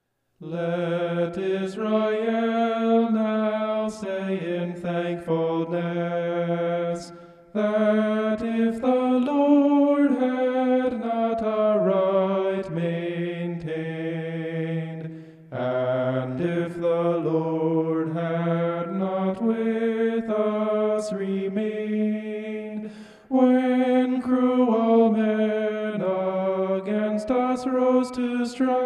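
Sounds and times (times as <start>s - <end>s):
homophonic vocals: 0.4s - 28.8s.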